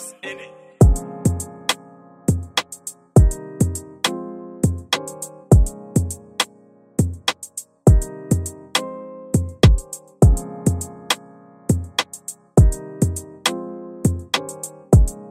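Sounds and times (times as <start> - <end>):
afrobeat type beat: 0.8 - 3.8, 4.7 - 6.2, 7.0 - 8.5, 9.4 - 10.9, 11.7 - 13.3, 14.1 - 15.2.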